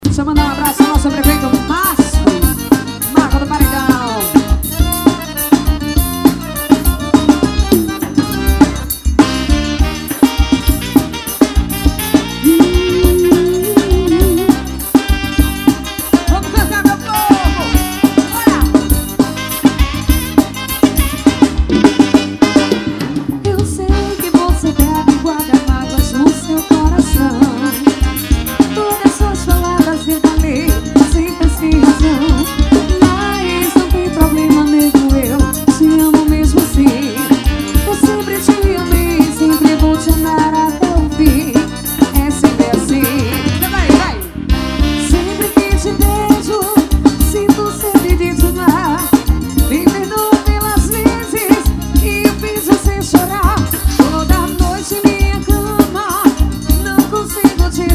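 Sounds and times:
old-style xote forró music: 0.1s - 57.9s.

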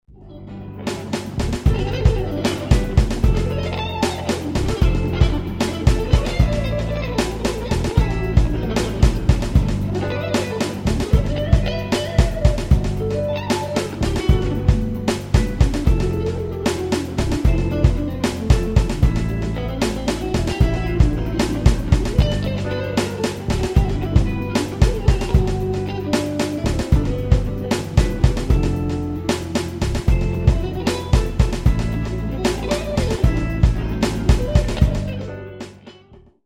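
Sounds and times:
jazz music: 0.1s - 36.2s.

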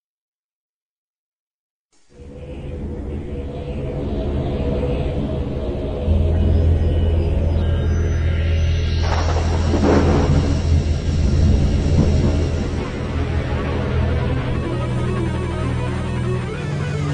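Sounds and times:
windstorm: 2.1s - 7.7s, 9.0s - 17.0s.

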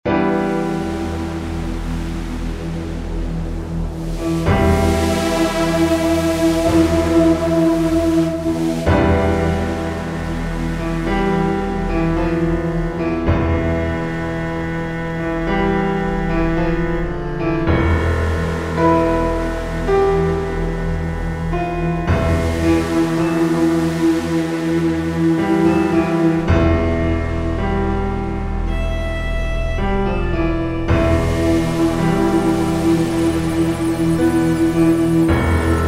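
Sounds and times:
suspense soundtrack: 0.0s - 35.8s.

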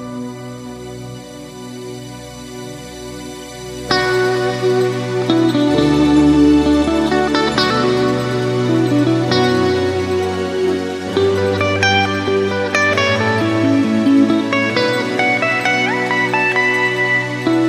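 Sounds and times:
guitar toccata: 3.8s - 17.6s.

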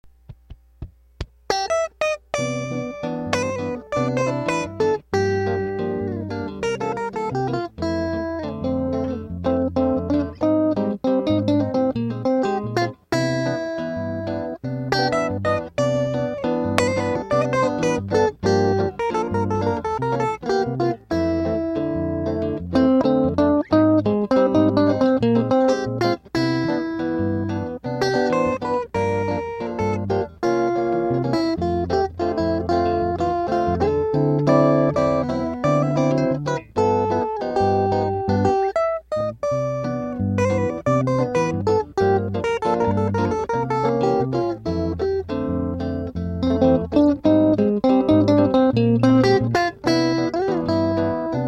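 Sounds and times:
instrumental music: 0.0s - 51.4s.

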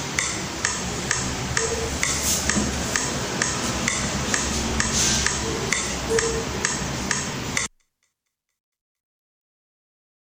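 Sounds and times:
metronome ticking: 0.0s - 8.1s.

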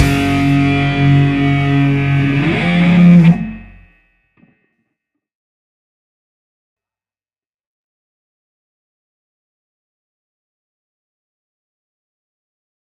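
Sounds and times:
punk rock music: 0.0s - 3.9s.

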